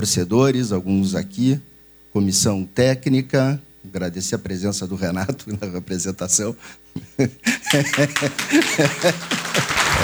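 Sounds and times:
speech: 0.0 - 10.0
laughter: 7.2 - 10.0
crowd applauding: 7.5 - 10.0.

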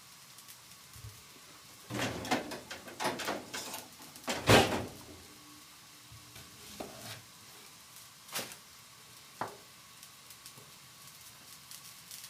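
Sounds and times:
faint sizzling during meal prep: 0.0 - 12.2
stirring and scraping clatter in kitchen: 1.9 - 3.9.

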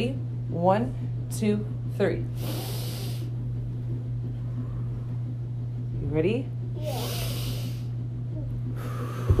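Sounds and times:
speech: 0.0 - 2.8, 6.1 - 7.1
steady low hum: 0.0 - 9.3
group deep inhale through nose: 2.4 - 3.3, 6.9 - 7.9.

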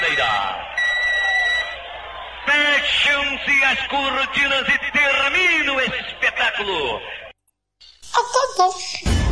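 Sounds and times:
referee's whistle: 0.0 - 1.9
speech: 2.8 - 7.2, 8.1 - 9.2
laughter: 5.4 - 7.3.

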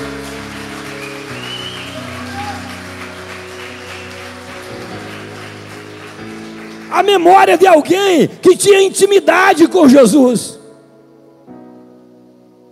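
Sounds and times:
audience applauding: 0.0 - 8.4
speech: 6.9 - 10.6.

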